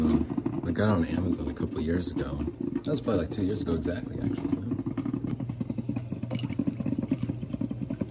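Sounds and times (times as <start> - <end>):
loud drip coffee maker brewing: 0.0 - 8.0
speech: 0.8 - 4.6.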